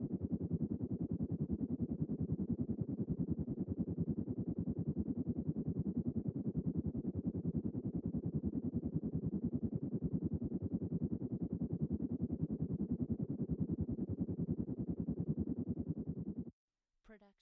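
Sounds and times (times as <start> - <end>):
distant helicopter: 0.1 - 16.5.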